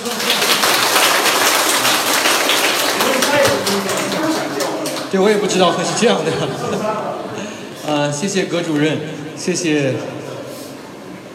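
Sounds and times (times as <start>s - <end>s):
warm audience applause: 0.0s - 6.2s
laughter: 3.0s - 7.8s
speech: 5.1s - 10.2s.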